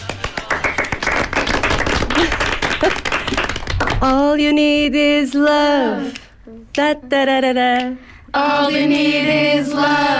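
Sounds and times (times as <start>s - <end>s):
audience applause: 0.0s - 3.9s
speech: 4.0s - 6.2s, 6.8s - 10.1s.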